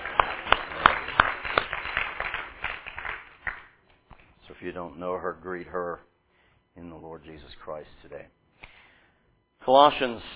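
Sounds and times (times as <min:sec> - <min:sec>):
audience clapping: 0:00.0 - 0:04.2
speech: 0:04.6 - 0:06.1, 0:06.8 - 0:08.4, 0:09.6 - 0:10.3.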